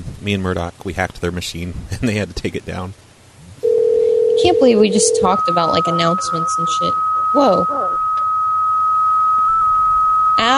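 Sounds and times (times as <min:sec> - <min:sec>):
speech: 0:00.2 - 0:03.1, 0:04.4 - 0:08.0, 0:10.4 - 0:10.5
weird beep on a phone line: 0:04.3 - 0:10.5.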